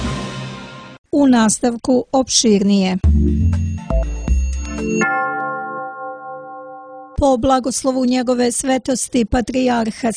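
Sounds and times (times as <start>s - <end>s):
speech: 1.2s - 3.2s, 7.2s - 10.1s
Orthodox church bells ringing: 4.4s - 7.2s.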